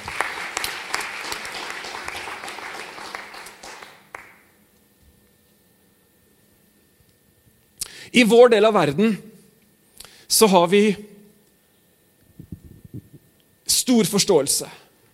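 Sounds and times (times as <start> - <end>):
audience applause: 0.0 - 4.4
speech: 8.1 - 9.3, 10.4 - 11.1, 13.9 - 14.8.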